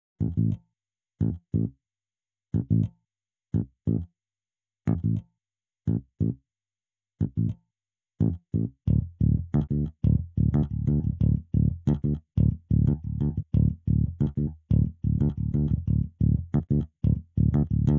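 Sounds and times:
electric bass: 0.2 - 0.6, 1.2 - 1.7, 2.6 - 2.9, 3.6 - 4.1, 4.9 - 5.2, 5.9 - 6.4, 7.2 - 7.6, 8.2 - 17.9.

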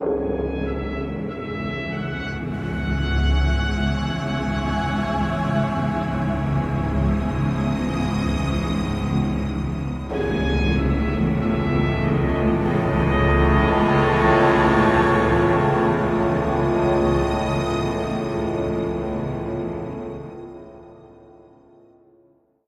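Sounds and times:
background music: 0.0 - 22.2.

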